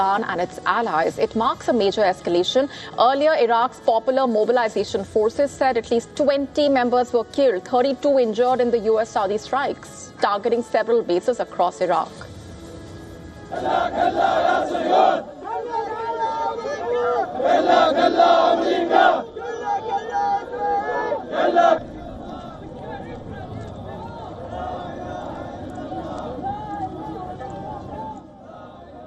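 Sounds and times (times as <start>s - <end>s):
speech: 0.0s - 12.3s, 13.5s - 15.8s, 16.5s - 19.3s
murmur of many voices: 13.4s - 29.0s
crowd of men chanting slogans: 13.5s - 29.0s.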